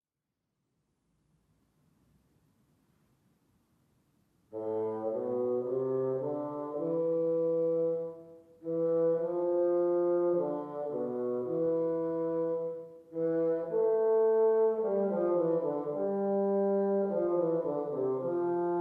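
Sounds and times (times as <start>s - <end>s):
bassoon playing studies: 4.5s - 18.7s.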